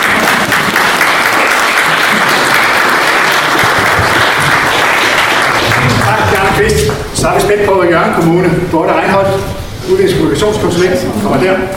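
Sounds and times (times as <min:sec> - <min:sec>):
audience applause: 0:00.0 - 0:07.0
speech: 0:07.2 - 0:11.7.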